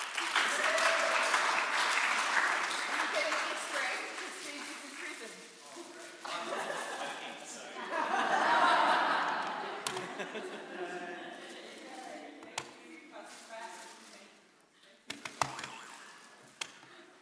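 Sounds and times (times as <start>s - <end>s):
audience applauding: 0.0s - 5.1s
laughter: 6.2s - 11.8s.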